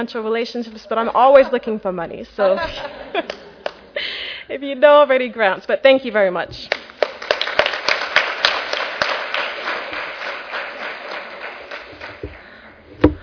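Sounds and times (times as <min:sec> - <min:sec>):
speech: 0:00.0 - 0:03.4, 0:04.5 - 0:06.8
laughter: 0:01.2 - 0:01.8, 0:02.4 - 0:04.3
crowd applauding a panel: 0:06.7 - 0:12.9.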